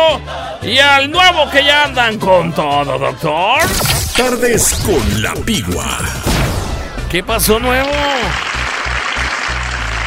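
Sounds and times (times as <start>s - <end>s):
speech: 0.2s - 6.4s, 7.1s - 8.5s
applause sound effect: 7.7s - 10.0s.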